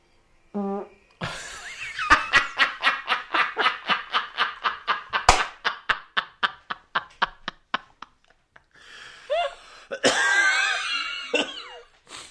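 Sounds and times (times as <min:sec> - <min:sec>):
fart: 0:00.6 - 0:01.1
laughter: 0:01.2 - 0:08.4, 0:10.1 - 0:11.8.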